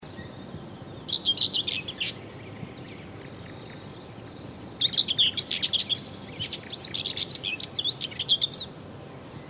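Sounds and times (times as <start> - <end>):
common whitethroat singing: 0.0 - 9.4.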